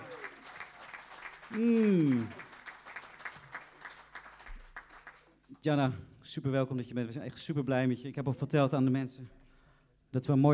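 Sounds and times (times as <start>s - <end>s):
person whooping: 0.0s - 0.5s, 1.5s - 2.5s
audience applause greeting a singer at a jazz meeting: 0.0s - 5.3s
speech: 1.5s - 2.4s, 5.6s - 9.4s, 10.1s - 10.5s.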